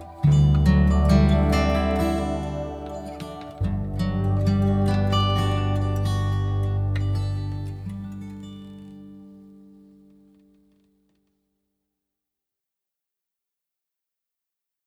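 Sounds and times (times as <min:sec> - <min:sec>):
instrumental music: 0:00.0 - 0:09.0.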